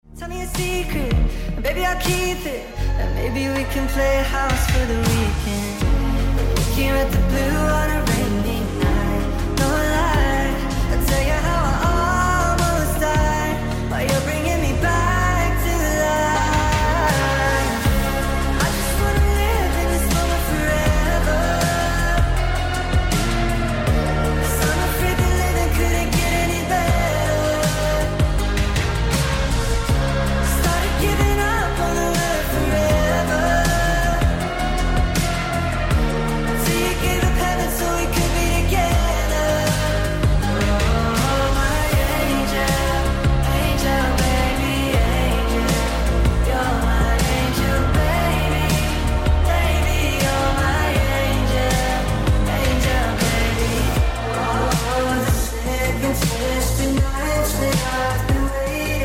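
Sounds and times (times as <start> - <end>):
music: 0.0 - 59.0.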